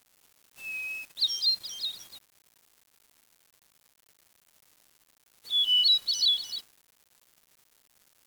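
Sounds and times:
bird giving high twittering calls: 0.6s - 2.2s, 5.5s - 6.6s.

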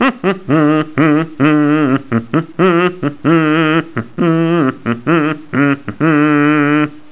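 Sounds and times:
laughter: 0.0s - 7.0s
person humming: 0.0s - 7.1s.

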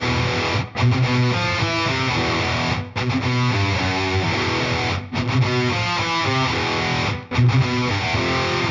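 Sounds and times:
guitar: 0.0s - 8.7s.

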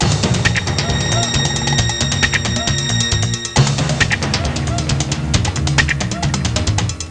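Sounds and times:
music loop: 0.0s - 7.0s.

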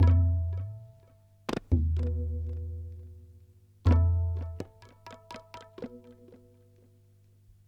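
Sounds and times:
ethnic percussion loop: 0.0s - 0.9s, 1.5s - 2.8s, 3.9s - 6.6s.

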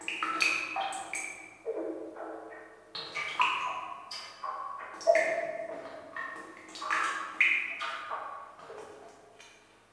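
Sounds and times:
water dripping in a cave: 0.0s - 9.8s.

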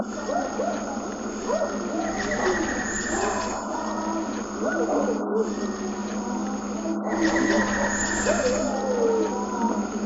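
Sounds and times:
howls: 0.0s - 10.0s.

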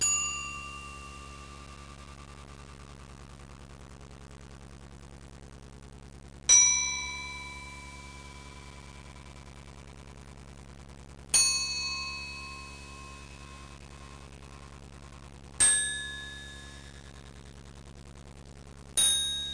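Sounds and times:
bell: 0.0s - 2.2s, 6.5s - 8.7s, 11.4s - 13.9s, 15.6s - 17.2s, 19.0s - 19.5s.

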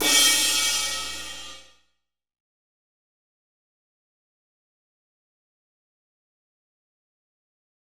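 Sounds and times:
crash cymbal: 0.0s - 1.7s.

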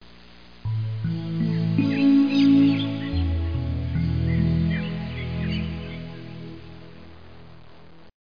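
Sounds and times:
birds: 0.7s - 7.0s.

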